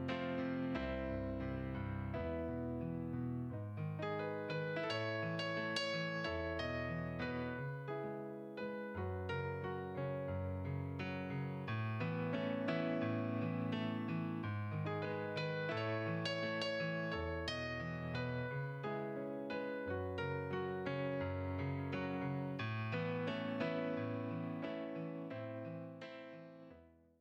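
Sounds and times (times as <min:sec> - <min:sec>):
piano comping: 0:00.0 - 0:26.4.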